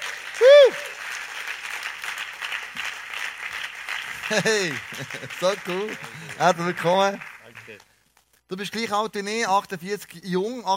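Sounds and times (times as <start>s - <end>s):
big audience applause: 0.0s - 7.9s
laughter: 4.2s - 6.5s
speech: 4.3s - 7.9s, 8.5s - 10.7s.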